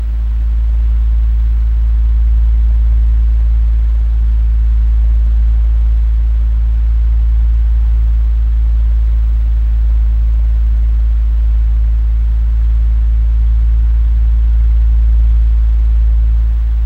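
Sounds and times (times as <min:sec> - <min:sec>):
fan: 0:00.0 - 0:16.8.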